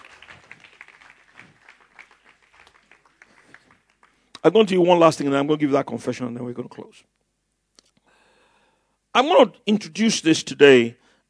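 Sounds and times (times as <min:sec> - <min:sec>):
audience clapping: 0:00.0 - 0:04.9
speech: 0:04.4 - 0:07.2, 0:09.2 - 0:11.0.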